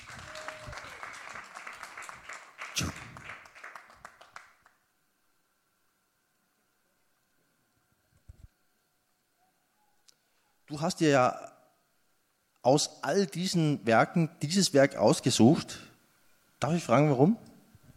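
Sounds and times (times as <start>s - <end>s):
audience applause: 0.0s - 4.8s
speech: 10.7s - 11.5s, 12.6s - 15.9s, 16.6s - 17.5s.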